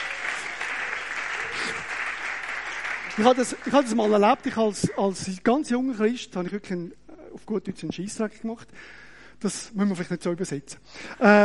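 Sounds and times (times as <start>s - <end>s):
murmur of voices: 0.0s - 2.0s
crowd applauding: 0.0s - 5.1s
speech: 3.2s - 11.4s.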